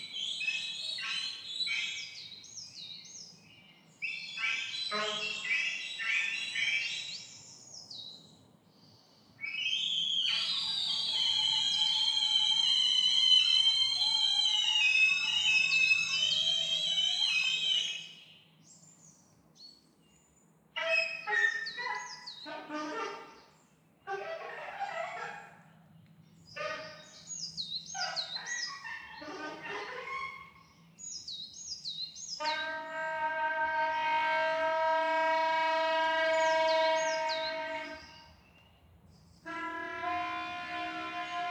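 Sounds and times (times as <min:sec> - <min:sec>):
forest dawn ambience: 0:00.0 - 0:41.4.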